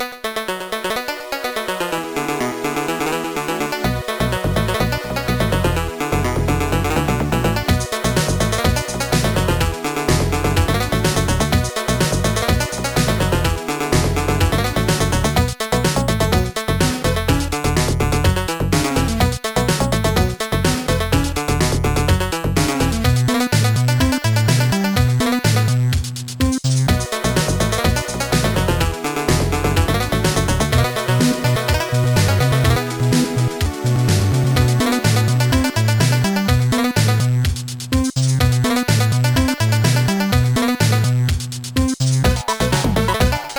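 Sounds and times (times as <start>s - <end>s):
jazz funk music: 0.7s - 43.5s.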